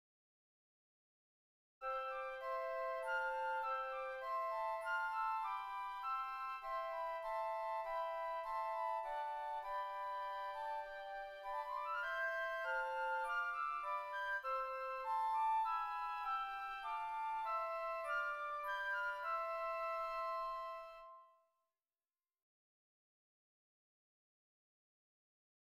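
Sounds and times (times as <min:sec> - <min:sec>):
flutes playing a hymn: 0:01.8 - 0:21.4.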